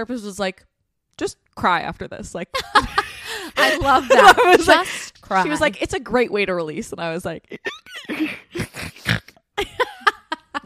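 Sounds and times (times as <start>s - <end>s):
speech: 0.0s - 8.4s
laughter: 2.6s - 5.6s, 9.6s - 10.6s
person snorting: 8.0s - 9.4s.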